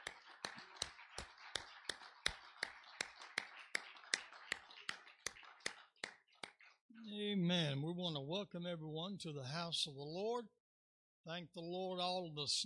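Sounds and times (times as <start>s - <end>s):
audience clapping in praise: 0.0s - 6.8s
speech: 7.5s - 10.6s, 11.2s - 12.6s.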